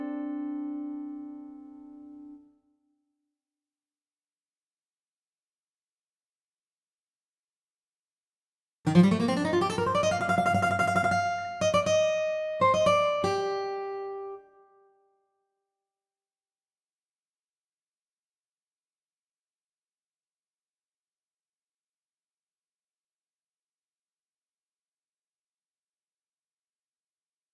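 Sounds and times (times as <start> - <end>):
acoustic music: 0.0 - 2.4, 8.9 - 14.6.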